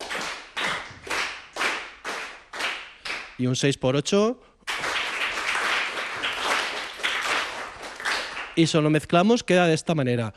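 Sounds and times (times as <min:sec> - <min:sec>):
hand claps: 0:00.0 - 0:03.4, 0:04.7 - 0:08.7
speech: 0:03.4 - 0:04.5, 0:08.6 - 0:10.3.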